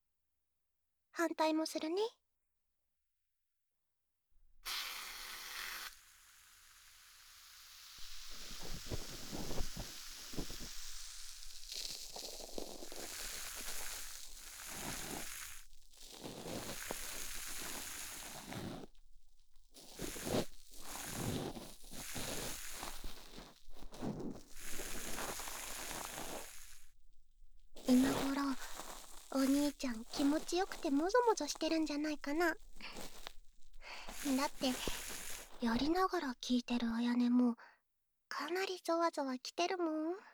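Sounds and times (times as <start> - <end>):
speech: 1.2 - 2.2, 29.8 - 33.0, 34.2 - 35.0, 35.6 - 37.7, 38.3 - 40.3
sizzling then crackling sound at the ear: 4.6 - 36.5.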